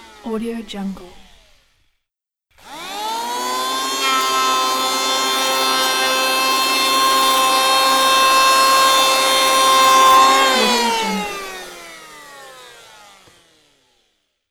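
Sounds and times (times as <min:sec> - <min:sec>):
electric planer: 0:02.6 - 0:13.7.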